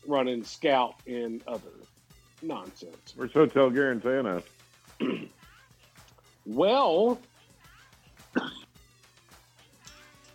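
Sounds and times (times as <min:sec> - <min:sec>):
speech: 0:00.1 - 0:05.4, 0:06.4 - 0:07.3, 0:08.4 - 0:08.6
man clearing his throat: 0:05.0 - 0:05.4, 0:08.3 - 0:08.7.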